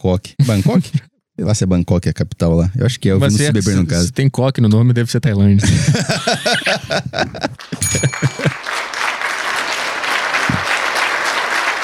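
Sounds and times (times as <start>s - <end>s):
speech: 0.0s - 8.4s
laughter: 5.6s - 8.6s
crowd applause: 6.4s - 11.8s.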